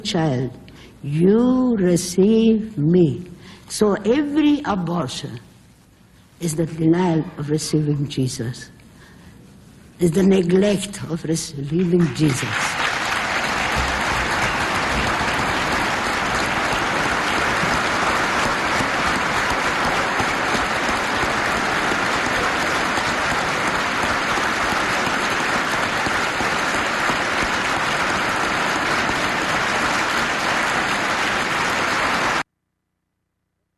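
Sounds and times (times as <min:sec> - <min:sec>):
speech: 0:00.0 - 0:05.5, 0:06.4 - 0:08.8, 0:10.0 - 0:12.8
audience applause: 0:12.5 - 0:32.4.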